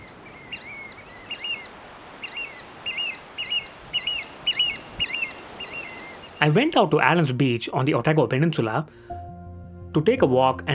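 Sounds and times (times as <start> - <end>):
oystercatcher calls: 0.0 - 6.6
hiss: 0.0 - 10.7
speech: 6.4 - 9.1, 10.0 - 10.7.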